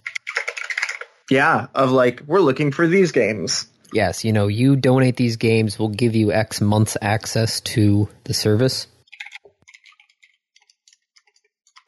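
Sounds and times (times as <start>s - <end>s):
keyboard typing: 0.0s - 1.2s, 9.0s - 11.8s
speech: 1.3s - 8.9s.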